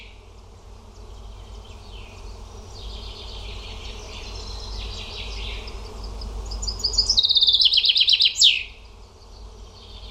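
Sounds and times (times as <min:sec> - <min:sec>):
bird singing: 0:00.0 - 0:10.1.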